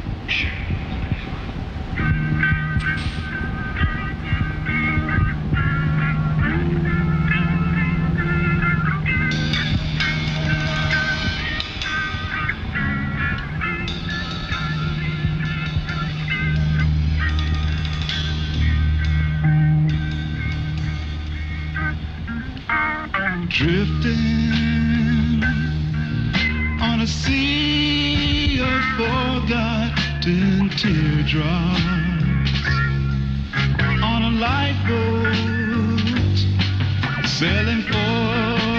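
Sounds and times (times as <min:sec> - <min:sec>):
low droning notes: 0:00.0 - 0:38.7
honking and squawking tones: 0:00.3 - 0:23.5.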